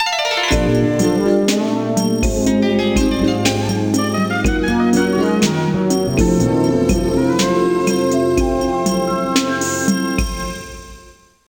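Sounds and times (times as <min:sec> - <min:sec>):
stage clear jingle: 0:00.5 - 0:11.1.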